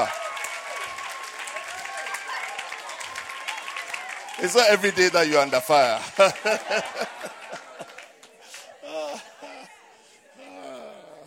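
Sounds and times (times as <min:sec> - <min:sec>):
sisters in audience clapping: 0:00.0 - 0:08.9
speech: 0:04.4 - 0:07.4
laughter: 0:04.4 - 0:11.2.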